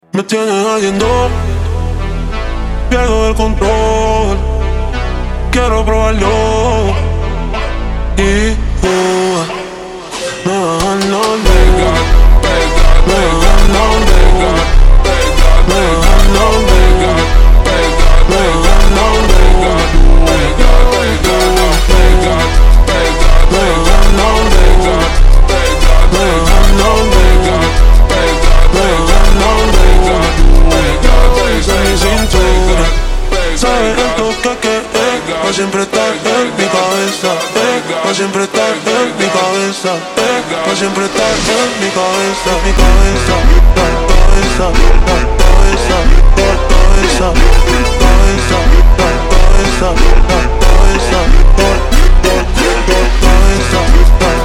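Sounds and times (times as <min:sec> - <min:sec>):
ultra slowed phonk music: 0:00.0 - 0:54.4.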